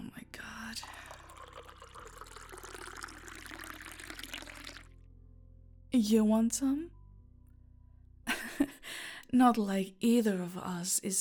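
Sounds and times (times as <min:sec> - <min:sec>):
low steady hum: 0:00.0 - 0:11.1
drink poured into a glass: 0:00.8 - 0:05.0
speech: 0:06.0 - 0:07.0, 0:09.3 - 0:11.1.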